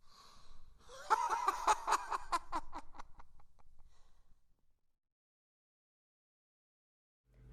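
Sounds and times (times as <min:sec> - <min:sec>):
evil man laughing insanely: 0:00.9 - 0:03.2.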